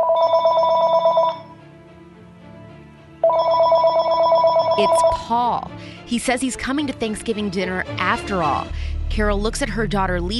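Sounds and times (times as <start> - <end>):
telephone ringing: 0.0 - 1.6, 3.2 - 5.3
speech: 4.8 - 10.3.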